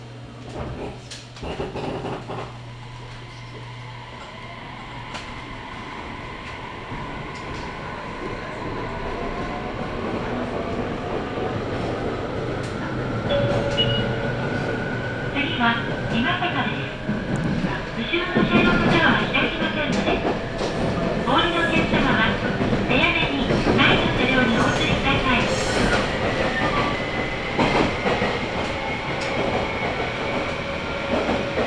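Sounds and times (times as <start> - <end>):
Sasebo Line train running from Arita toward Kitahori: 0.0 - 31.6
brief tones: 13.3 - 14.3.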